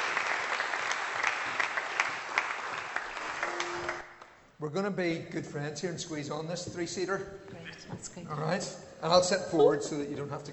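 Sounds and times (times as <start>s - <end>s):
audience applause: 0.0s - 4.2s
speech: 4.6s - 10.5s.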